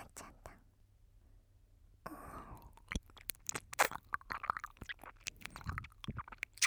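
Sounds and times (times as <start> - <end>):
ASMR ear licking: 2.6 - 6.6.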